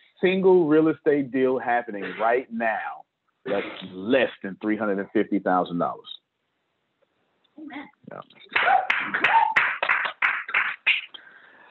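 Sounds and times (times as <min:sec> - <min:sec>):
speech: 0:00.2 - 0:06.2, 0:07.6 - 0:09.4
audience clapping: 0:08.5 - 0:11.2.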